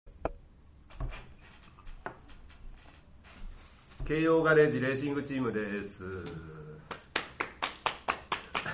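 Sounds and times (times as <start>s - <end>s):
speech: 4.1s - 6.6s
rhythmic hand clapping: 6.8s - 8.7s.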